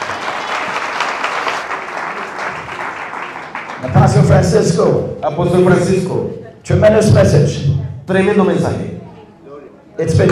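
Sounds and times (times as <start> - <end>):
audience applause: 0.0 - 3.9
speech: 3.8 - 8.9, 10.0 - 10.2.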